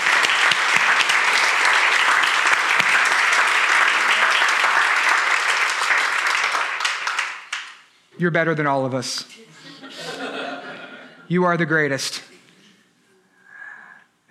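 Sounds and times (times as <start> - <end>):
audience applause: 0.0 - 7.7
speech: 8.2 - 9.5, 11.3 - 12.2
laughter: 9.4 - 11.3.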